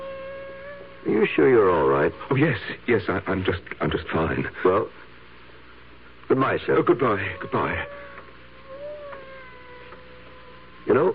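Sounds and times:
cat meowing inside a room: 0.0s - 2.3s, 7.1s - 11.1s
speech: 1.0s - 5.0s, 6.3s - 8.0s, 10.8s - 11.1s.

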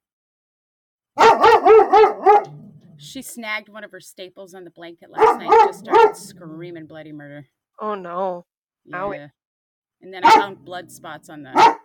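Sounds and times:
dog barking: 1.2s - 3.0s, 5.2s - 6.5s, 10.2s - 10.6s, 11.5s - 11.8s
speech: 3.0s - 9.4s, 10.0s - 11.8s.

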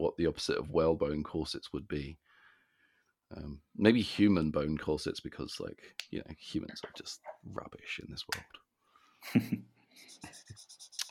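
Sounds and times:
speech: 0.0s - 2.3s, 3.3s - 8.6s, 9.2s - 10.8s
pen drawing on paper: 10.1s - 11.0s.

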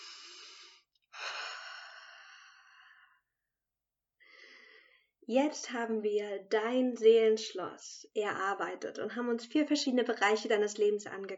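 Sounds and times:
deep breathing during a guided self-confidence exercise: 0.0s - 3.3s, 4.2s - 5.2s
speech: 5.3s - 11.3s.

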